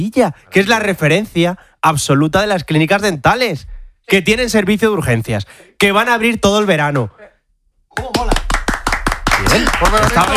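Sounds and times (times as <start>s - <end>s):
speech: 0.0s - 7.2s, 8.0s - 8.4s, 9.5s - 10.3s
audience applause: 8.0s - 10.3s.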